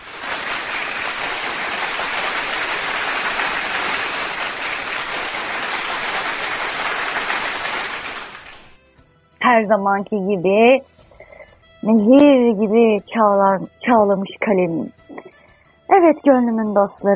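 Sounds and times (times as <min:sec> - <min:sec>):
applause: 0:00.0 - 0:08.8
speech: 0:09.6 - 0:11.0, 0:11.8 - 0:15.0, 0:15.9 - 0:17.1.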